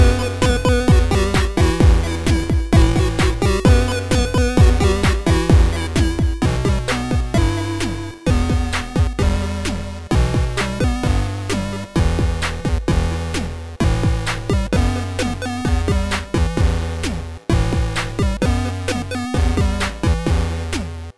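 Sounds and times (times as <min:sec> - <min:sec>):
chiptune inspired music: 0:00.0 - 0:21.1.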